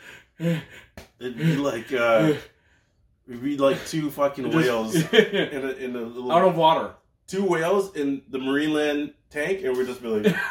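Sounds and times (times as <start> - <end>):
person imitating exhausted fighters gasping for breath: 0.0 - 2.4
speech: 0.4 - 2.5, 3.3 - 10.5
laughter: 3.7 - 5.8, 10.0 - 10.5.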